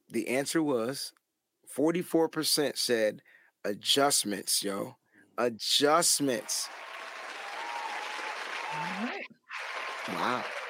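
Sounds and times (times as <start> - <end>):
speech: 0.1 - 6.9, 8.7 - 10.6
crowd clapping: 6.4 - 10.6
short rising voice or whoop: 7.3 - 9.3.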